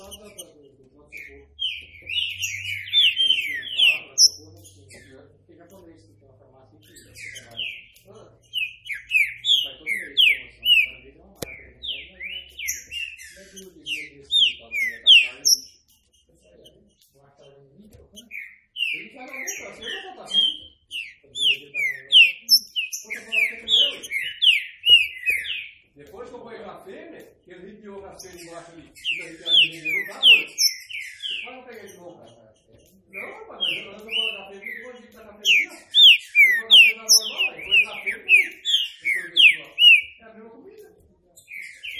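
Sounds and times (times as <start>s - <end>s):
green-winged saltator whistling: 1.2s - 5.0s, 6.9s - 15.8s, 18.2s - 25.8s, 28.2s - 32.0s, 33.1s - 40.2s, 41.5s - 41.9s
sharp click: 11.4s - 11.6s.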